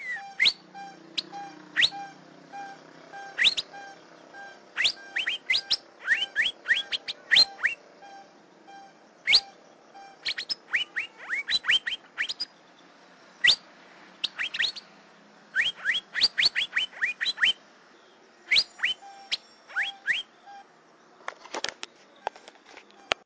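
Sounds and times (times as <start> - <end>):
Asian fairy-bluebird whistles: 0.0 - 12.6, 13.4 - 13.6, 14.2 - 14.9, 15.5 - 17.6, 18.5 - 20.6.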